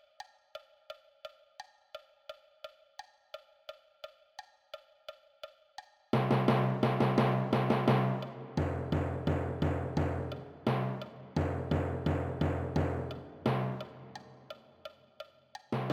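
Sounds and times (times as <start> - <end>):
timpani: 6.2 - 14.2, 15.7 - 15.9.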